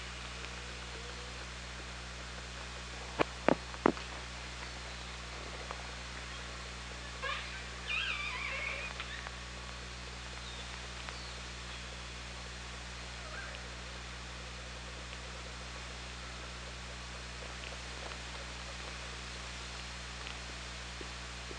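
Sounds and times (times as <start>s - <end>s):
low hum: 0.0s - 21.5s
killer whale call: 7.1s - 9.3s.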